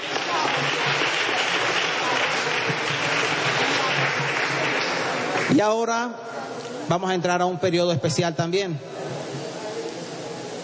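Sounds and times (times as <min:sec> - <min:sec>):
audience applause: 0:00.0 - 0:05.8
speech: 0:05.6 - 0:09.0.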